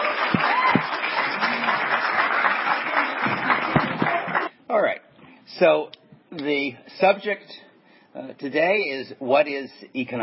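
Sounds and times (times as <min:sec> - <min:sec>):
audience applause welcoming a speaker to an economics lecture: 0:00.0 - 0:04.5
speech: 0:05.6 - 0:10.2.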